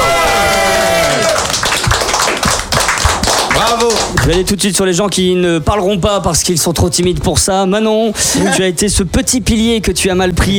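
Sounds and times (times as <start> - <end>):
shouts and whoops: 0.0 - 1.6
audience applause: 0.0 - 4.4
speech: 4.1 - 10.5.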